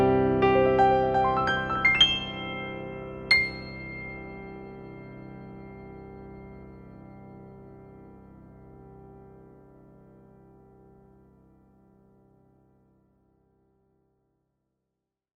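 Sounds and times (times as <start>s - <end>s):
Casio GP 310 digital piano tone: 0.0s - 9.6s.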